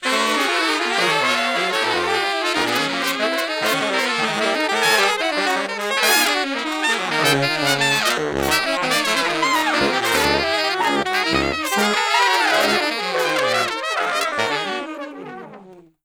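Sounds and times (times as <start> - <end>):
horn section noise: 0.0 - 15.8.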